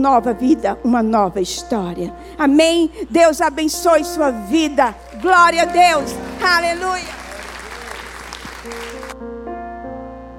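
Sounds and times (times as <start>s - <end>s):
speech: 0.0s - 7.2s
audience applause: 5.0s - 9.2s.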